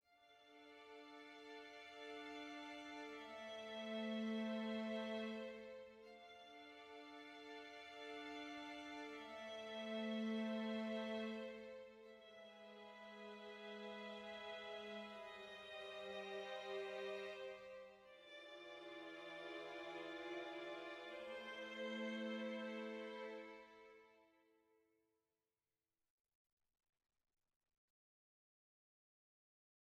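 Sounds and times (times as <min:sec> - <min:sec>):
sad soft music: 0:00.1 - 0:24.5.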